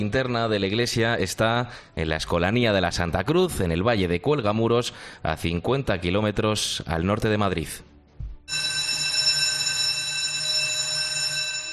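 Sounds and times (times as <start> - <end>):
speech: 0.0 - 7.9, 8.5 - 8.7
electric school bell ringing for end of class: 8.5 - 11.7.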